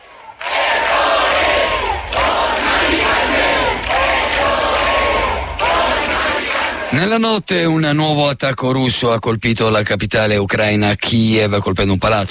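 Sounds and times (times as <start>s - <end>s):
protest crowd chanting in a square: 0.0s - 7.0s
speech: 6.9s - 12.2s.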